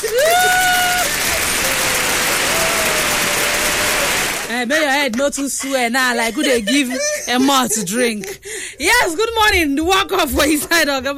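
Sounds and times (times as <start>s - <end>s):
crowd applauding: 0.0s - 4.6s
laughter: 0.0s - 8.4s
speech: 5.0s - 11.1s.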